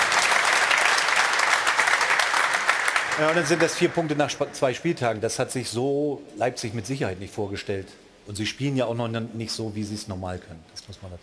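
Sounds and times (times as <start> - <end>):
live audience applauding: 0.0 - 4.6
speech: 3.2 - 11.2.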